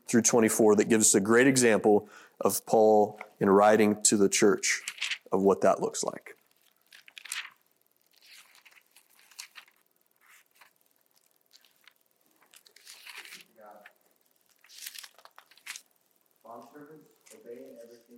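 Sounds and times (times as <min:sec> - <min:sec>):
speech: 0:00.1 - 0:06.4
Bible pages being turned to Colossians: 0:04.6 - 0:05.4, 0:06.6 - 0:15.9.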